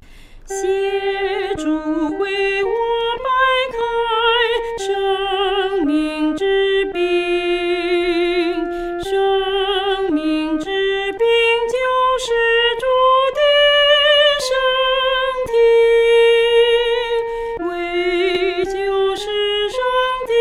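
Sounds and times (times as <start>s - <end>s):
solo singing voice: 0.5s - 20.3s.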